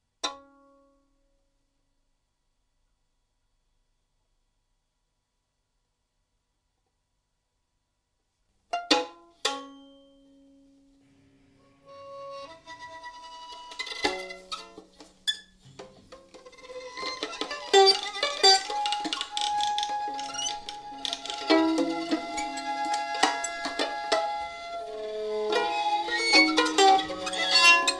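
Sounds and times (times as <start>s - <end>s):
violin: 11.1s - 27.9s.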